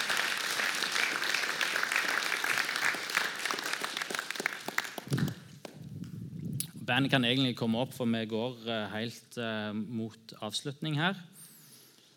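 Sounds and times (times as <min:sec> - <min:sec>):
audience applause: 0:00.0 - 0:05.5
speech: 0:06.9 - 0:11.3.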